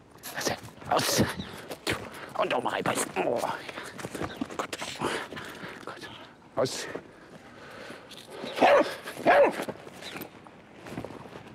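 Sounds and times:
speech: 0.4s - 1.5s, 2.4s - 5.2s, 6.6s - 7.1s
sniffer dog barking during scent training: 8.5s - 9.6s.

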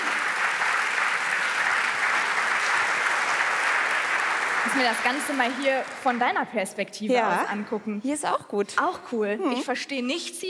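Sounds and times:
audience applause: 0.0s - 6.6s
speech: 4.6s - 10.4s.

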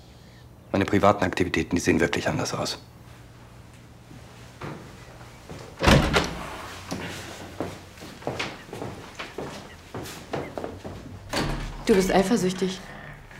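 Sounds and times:
speech: 0.7s - 3.0s, 11.9s - 13.0s
door being closed: 5.8s - 6.7s, 11.1s - 13.3s.

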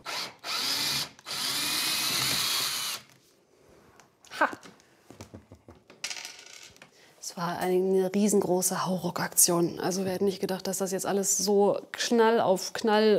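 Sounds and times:
cordless screwdriver whirring: 0.0s - 3.1s
speech: 7.4s - 13.1s.

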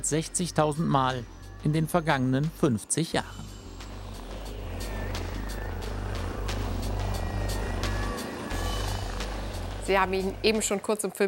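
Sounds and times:
speech: 0.0s - 3.6s, 9.9s - 11.2s
rescue helicopter taking off: 3.3s - 10.9s.

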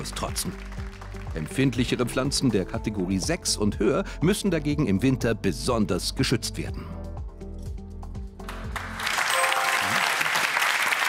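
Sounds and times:
applause: 0.0s - 2.0s, 8.4s - 11.0s
speech: 0.0s - 7.0s.

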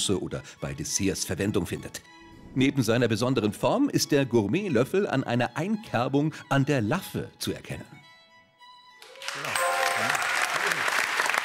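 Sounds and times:
speech: 0.0s - 8.0s
studio audience applause: 9.0s - 11.4s.

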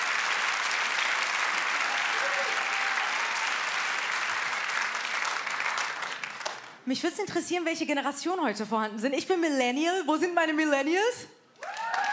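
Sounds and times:
audience applause: 0.0s - 6.8s, 11.6s - 12.1s
speech: 6.9s - 11.4s.

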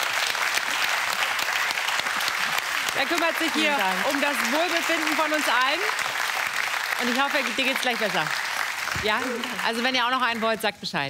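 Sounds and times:
studio audience applause at a quiz duel: 0.0s - 10.6s
speech: 3.0s - 6.1s, 7.0s - 11.0s.

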